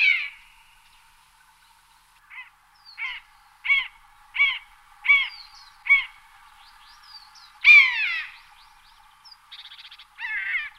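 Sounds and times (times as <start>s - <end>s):
long-legged buzzard calls: 2.3s - 6.2s, 7.6s - 8.4s, 10.2s - 10.7s.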